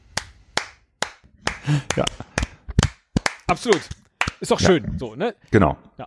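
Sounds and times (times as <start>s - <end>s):
hands clapping: 0.1s - 4.6s
speech: 1.7s - 2.3s, 3.5s - 6.0s.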